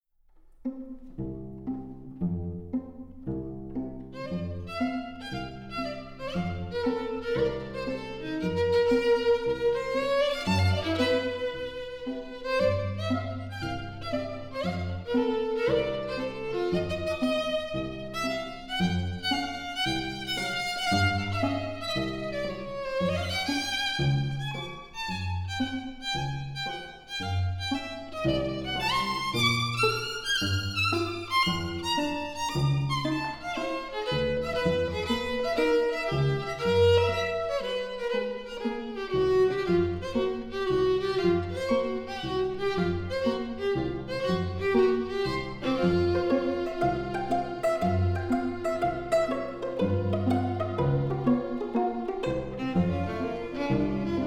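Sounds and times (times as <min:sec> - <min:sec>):
string quartet playing: 0:00.4 - 0:54.2.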